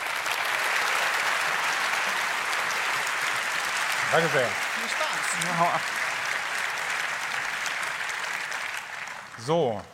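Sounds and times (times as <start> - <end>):
audience applause: 0.0 - 9.8
speech: 4.1 - 6.0, 9.4 - 9.9.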